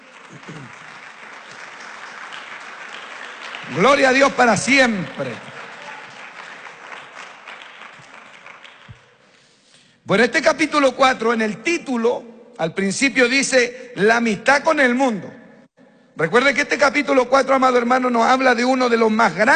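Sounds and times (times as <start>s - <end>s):
audience applauding: 0.0s - 9.5s
speech: 0.3s - 0.9s, 3.6s - 5.5s, 10.1s - 15.4s, 16.2s - 19.5s.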